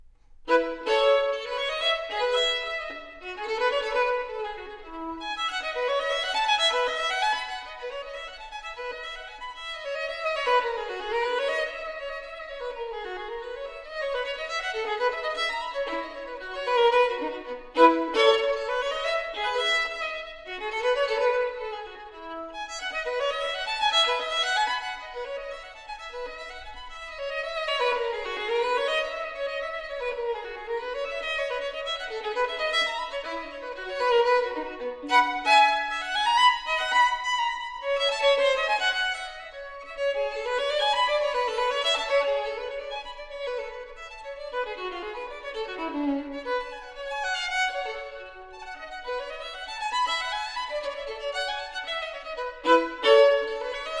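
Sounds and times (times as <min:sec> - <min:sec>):
solo violin bourree: 0:00.0 - 0:53.9.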